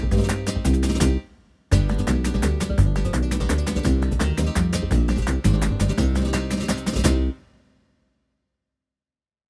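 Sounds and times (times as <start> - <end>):
flamenco music: 0.0 - 7.4.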